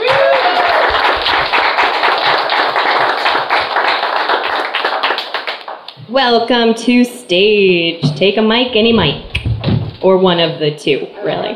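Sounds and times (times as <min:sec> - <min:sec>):
comedy show audience clapping for a comedian: 0:00.0 - 0:06.0
speech: 0:06.2 - 0:09.3, 0:10.0 - 0:11.5.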